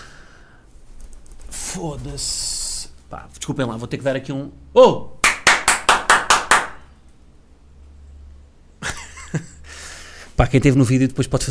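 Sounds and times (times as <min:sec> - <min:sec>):
rustling noise: 0:00.6 - 0:03.4
speech: 0:01.8 - 0:05.2, 0:09.3 - 0:09.5, 0:10.4 - 0:11.4
hand claps: 0:05.2 - 0:06.9.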